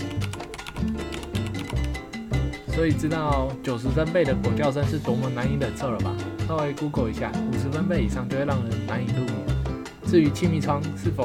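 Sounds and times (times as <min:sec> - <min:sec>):
typing on a mechanical keyboard: 0:00.0 - 0:02.0
speech: 0:02.8 - 0:09.4, 0:10.1 - 0:11.2.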